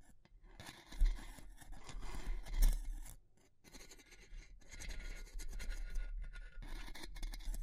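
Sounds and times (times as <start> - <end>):
wood, bamboo and straw being handled, scratching and scraping: 0.6 - 7.6.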